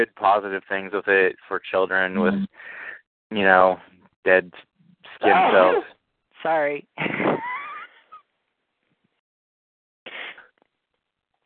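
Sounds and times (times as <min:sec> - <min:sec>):
speech: 0:00.0 - 0:07.4
sneeze: 0:05.2 - 0:05.9, 0:10.1 - 0:10.5.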